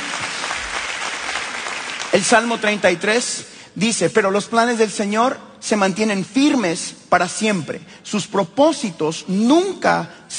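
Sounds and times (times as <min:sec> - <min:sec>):
audience applause: 0:00.0 - 0:02.6
speech: 0:02.1 - 0:10.3.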